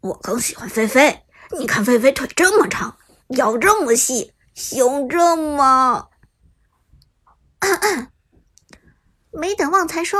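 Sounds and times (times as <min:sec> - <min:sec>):
speech: 0:00.0 - 0:06.1, 0:07.6 - 0:08.1, 0:09.4 - 0:10.1
cough: 0:07.6 - 0:08.2.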